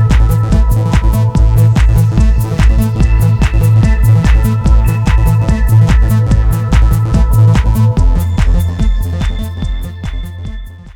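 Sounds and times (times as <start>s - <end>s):
trance dance music: 0.0s - 10.9s.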